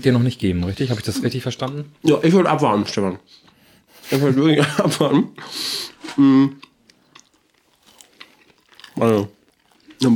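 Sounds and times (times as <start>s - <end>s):
speech: 0.0s - 3.5s, 4.1s - 6.7s, 9.0s - 9.4s, 10.0s - 10.1s
dry cookie crunching and chewing: 6.5s - 10.1s.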